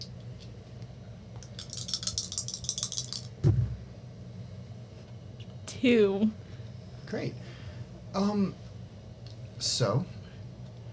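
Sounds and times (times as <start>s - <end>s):
dice being rolled: 1.4s - 3.3s
speech: 5.8s - 6.4s, 7.1s - 7.4s, 8.2s - 8.6s, 9.8s - 10.2s.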